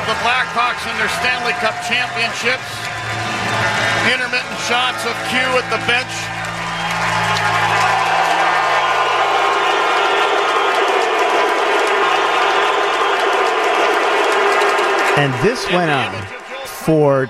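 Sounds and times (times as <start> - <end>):
standing ovation crowd cheering for Joel Quenneville: 0.0 - 17.2
speech: 0.1 - 6.4, 15.2 - 17.2.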